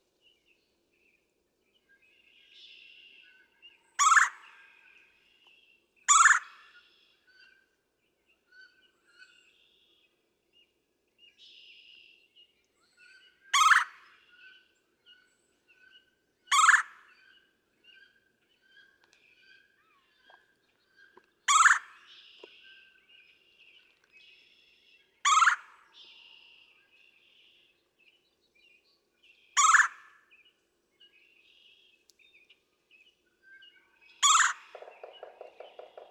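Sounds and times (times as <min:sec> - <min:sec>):
red-bellied woodpecker churr call: 0:04.0 - 0:04.4, 0:06.1 - 0:06.6, 0:13.5 - 0:14.0, 0:16.5 - 0:16.9, 0:21.5 - 0:22.5, 0:25.2 - 0:26.2, 0:29.6 - 0:30.0, 0:34.2 - 0:36.0.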